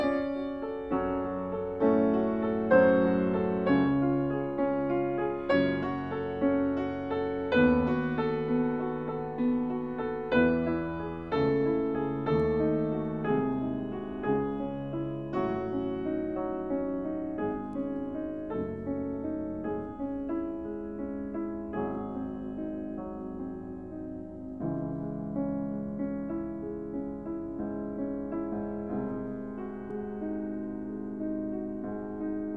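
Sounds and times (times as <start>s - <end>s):
piano sonata in C-sharp minor: 0.0s - 32.5s.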